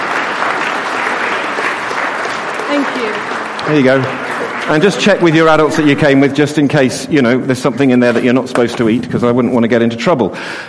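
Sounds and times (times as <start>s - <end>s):
crowd applause: 0.0s - 7.0s
speech: 2.7s - 10.6s.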